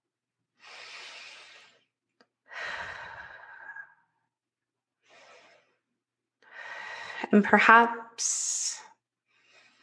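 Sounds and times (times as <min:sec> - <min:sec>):
slow soft breathing in through the nose and out through the mouth: 0:00.5 - 0:04.3, 0:04.9 - 0:07.3, 0:09.2 - 0:09.8
speech: 0:07.3 - 0:08.8.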